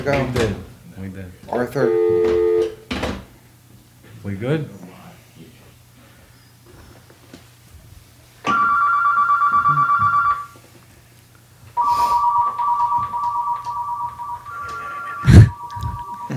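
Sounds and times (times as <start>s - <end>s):
speech: 0.0s - 2.6s, 4.2s - 4.9s
telephone ringing with incoming call: 1.8s - 2.8s, 8.5s - 10.6s, 11.8s - 16.3s
low hum: 13.6s - 16.3s.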